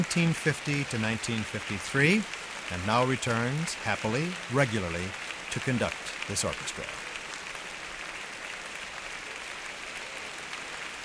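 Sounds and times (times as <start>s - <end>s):
speech: 0.0s - 7.1s
concert hall audience applause at Orchestra Hall: 0.0s - 11.0s.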